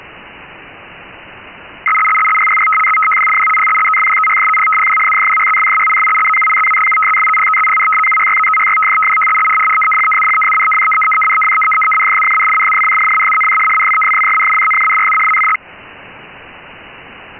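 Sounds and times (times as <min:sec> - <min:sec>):
RTTY radioteletype signal: 0:01.8 - 0:15.6.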